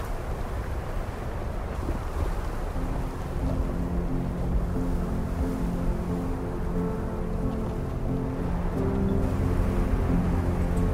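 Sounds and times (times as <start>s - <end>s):
roaring snowstorm wind: 0.0s - 10.9s.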